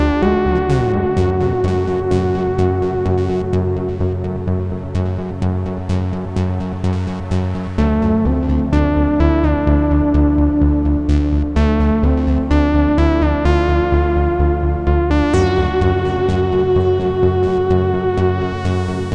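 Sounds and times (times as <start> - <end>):
ANDROMEDA A6 melody lead: 0.0 - 19.1.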